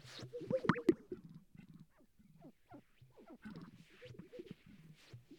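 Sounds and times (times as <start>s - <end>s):
sage-grouse strutting display coos and pops: 0.5s - 1.0s.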